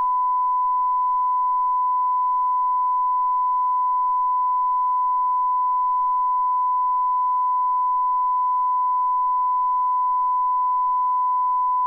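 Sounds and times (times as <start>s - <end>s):
94dB calibration tone: 0.0s - 11.8s.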